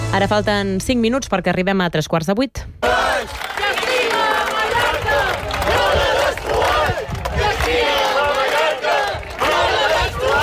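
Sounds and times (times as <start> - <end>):
speech: 0.1 - 3.8
shouts of protesters in a human chain: 2.8 - 10.3.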